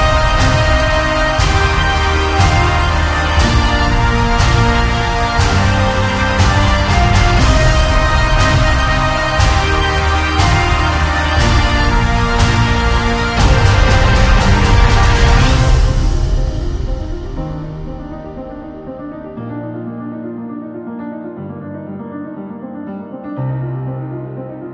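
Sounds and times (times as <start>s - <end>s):
epic motivational trailer music: 0.0s - 19.4s.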